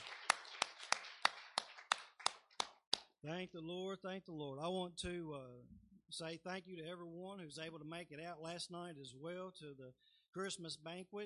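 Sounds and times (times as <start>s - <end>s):
rhythmic hand clapping: 0.0s - 3.2s
speech: 3.2s - 11.2s.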